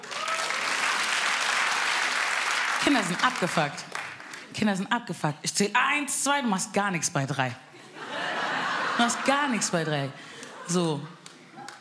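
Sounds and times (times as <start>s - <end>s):
audience applause: 0.0s - 4.4s
speech: 2.8s - 3.9s, 4.5s - 7.7s, 9.0s - 11.2s
laughter: 7.8s - 11.7s.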